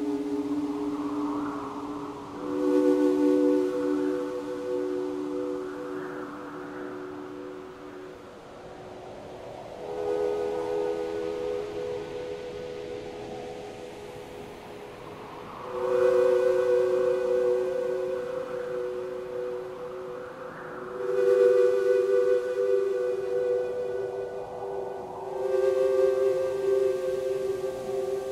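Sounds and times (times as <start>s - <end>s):
ambient soundtrack music: 0.0s - 28.2s.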